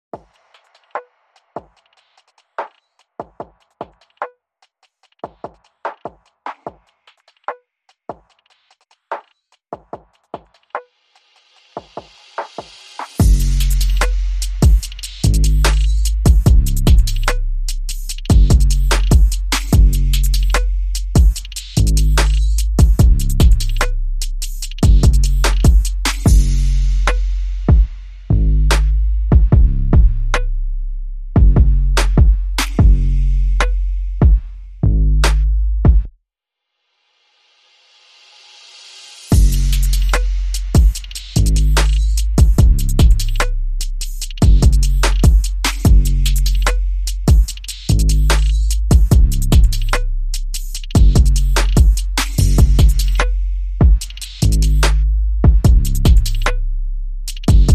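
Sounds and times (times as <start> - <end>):
drums: 0.0 - 30.5, 31.4 - 34.6, 35.2 - 36.1, 37.4 - 56.6, 57.3 - 57.7
bass: 13.2 - 36.1, 39.3 - 57.7.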